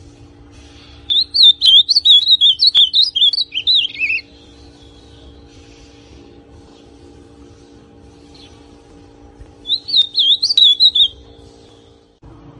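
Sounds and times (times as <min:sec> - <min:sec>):
ultramarine grosbeak song: 0:00.8 - 0:06.1, 0:09.6 - 0:12.1.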